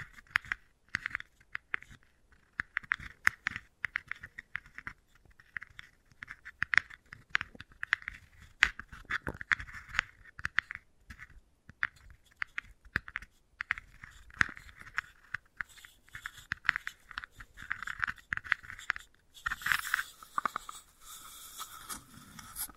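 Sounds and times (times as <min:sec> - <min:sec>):
wooden balls clicking and tapping: 0:00.0 - 0:20.9.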